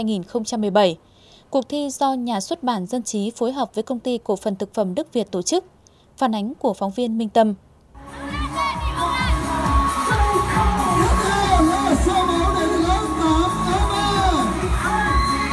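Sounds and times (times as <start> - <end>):
speech: 0.0 - 8.3
students cheering and shouting encouragement: 8.2 - 15.5.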